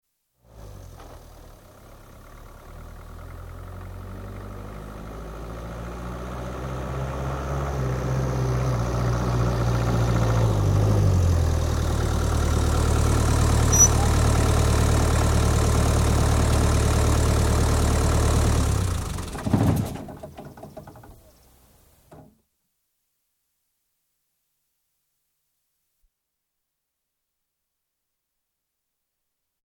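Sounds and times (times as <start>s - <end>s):
1967 Land Rover Series 2A 109 Safari Diesel approaching: 0.4s - 21.3s.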